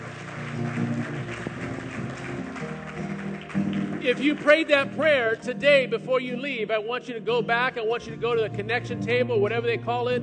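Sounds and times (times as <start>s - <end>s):
audience clapping: 0.0s - 5.8s
speech: 4.0s - 10.2s.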